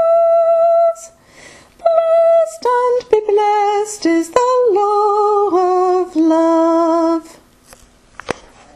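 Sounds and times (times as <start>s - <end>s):
soprano voice: 0.0s - 1.2s, 1.8s - 7.5s.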